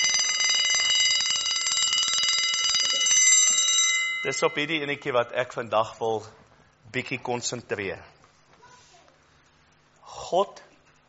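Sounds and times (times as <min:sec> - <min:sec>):
alarm clock ringing: 0:00.0 - 0:05.0
speech: 0:04.2 - 0:08.1, 0:10.3 - 0:10.7.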